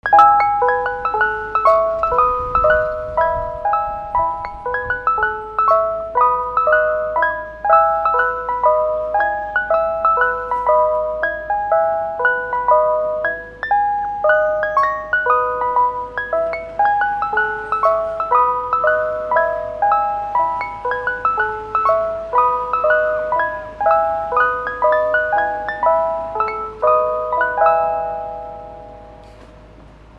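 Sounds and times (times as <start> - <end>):
vehicles: 0.0 - 30.1.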